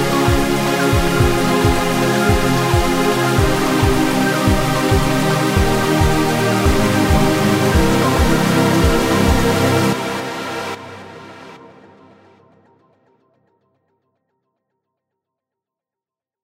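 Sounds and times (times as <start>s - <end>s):
trance music phrase sample: 0.0s - 12.4s.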